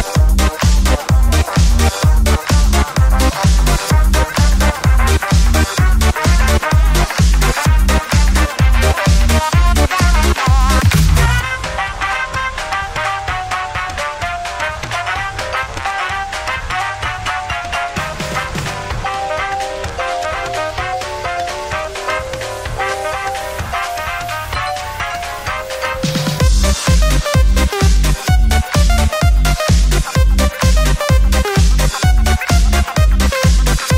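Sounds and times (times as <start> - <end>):
electro swing music: 0.0 - 33.9.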